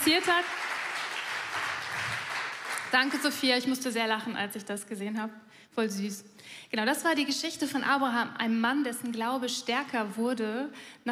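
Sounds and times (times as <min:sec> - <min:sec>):
speech: 0:00.0 - 0:00.6, 0:02.9 - 0:11.1
audience applause: 0:00.0 - 0:03.4.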